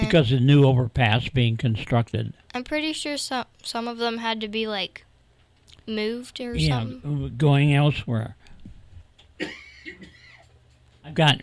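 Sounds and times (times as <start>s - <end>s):
speech: 0.1s - 5.1s, 5.8s - 8.4s, 9.4s - 10.1s, 11.1s - 11.4s
person clearing a tickly throat: 9.4s - 10.4s.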